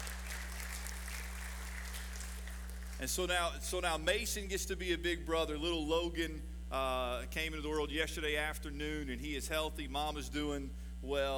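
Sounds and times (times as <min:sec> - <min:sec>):
crowd applauding: 0:00.0 - 0:03.1
speech: 0:03.0 - 0:11.3.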